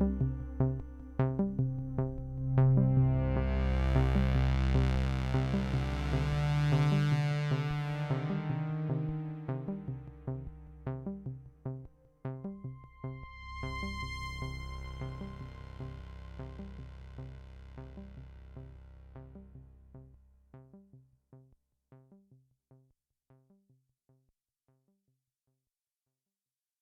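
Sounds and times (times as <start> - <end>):
synthesizer filter resonance: 0.0 - 19.8.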